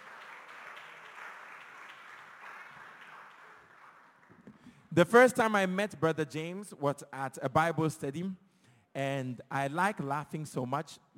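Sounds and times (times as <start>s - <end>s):
audience applause: 0.0s - 4.5s
speech: 5.0s - 8.4s, 9.0s - 11.1s.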